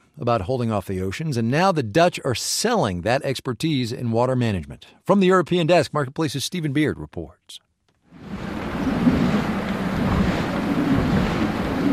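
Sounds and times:
speech: 0:00.2 - 0:08.4
strong wind rushing around traditional windmill sails: 0:08.2 - 0:11.9.

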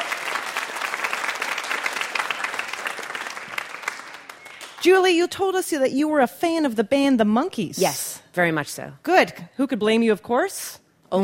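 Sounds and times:
audience applause: 0:00.0 - 0:04.8
speech: 0:04.8 - 0:11.2.

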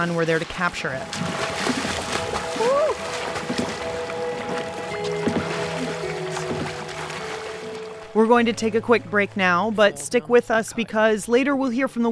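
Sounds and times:
speech: 0:00.0 - 0:01.6, 0:08.2 - 0:12.1
water splashing as a father swims with his sons: 0:00.0 - 0:09.0.

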